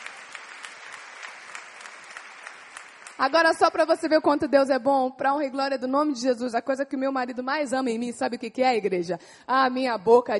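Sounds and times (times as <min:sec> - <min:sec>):
audience applauding: 0:00.0 - 0:03.6
speech: 0:03.2 - 0:10.3.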